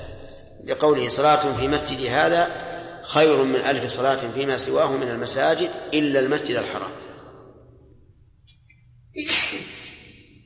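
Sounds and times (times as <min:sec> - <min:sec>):
speech: 0:00.7 - 0:07.0
person sneezing: 0:09.2 - 0:10.3.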